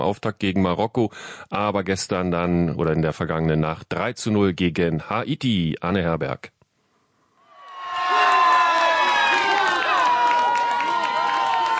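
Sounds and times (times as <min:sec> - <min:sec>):
speech: 0:00.0 - 0:06.6
crowd of fans cheering and screaming for a World Cup goal: 0:07.4 - 0:11.7
many overlapping excited shouts: 0:07.6 - 0:11.7.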